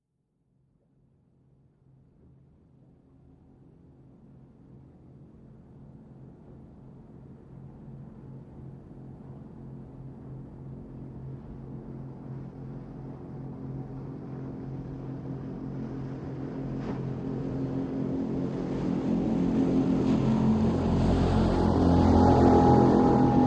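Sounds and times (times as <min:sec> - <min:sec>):
military PBR offshore boat engine: 0:05.8 - 0:23.4.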